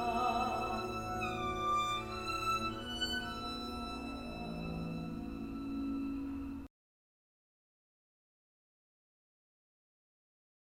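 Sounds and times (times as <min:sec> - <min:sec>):
string suite: 0:00.0 - 0:06.7.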